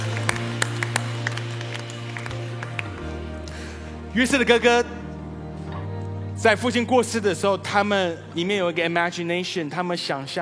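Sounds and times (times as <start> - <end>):
audience applause: 0.0 - 3.6
speech: 4.2 - 5.0, 6.4 - 10.3.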